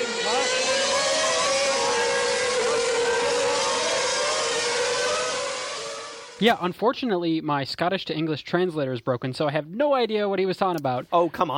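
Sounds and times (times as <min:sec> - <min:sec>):
Formula 1 car engine racing round the final corner: 0:00.0 - 0:06.6
speech: 0:06.4 - 0:11.5.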